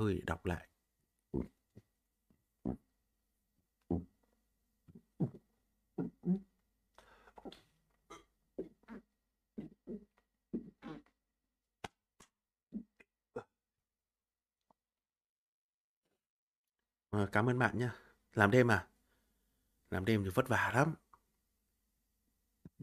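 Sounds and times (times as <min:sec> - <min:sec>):
speech: 0:00.0 - 0:00.7, 0:01.3 - 0:01.6, 0:17.2 - 0:18.9, 0:19.9 - 0:21.0
low throaty burps from gastroesophageal acid reflux: 0:08.1 - 0:11.2.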